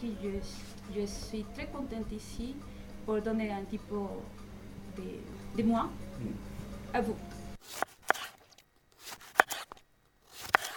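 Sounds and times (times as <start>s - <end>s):
speech: 0.0s - 4.4s, 5.0s - 7.9s
knife cutting a lemon for ceviche sauce: 7.6s - 10.7s.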